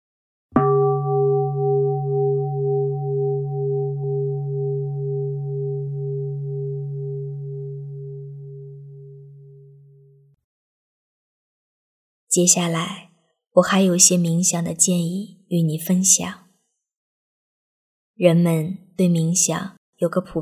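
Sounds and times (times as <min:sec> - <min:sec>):
meditation bell ringing: 0:00.6 - 0:10.1
speech: 0:12.3 - 0:16.4, 0:18.2 - 0:20.4.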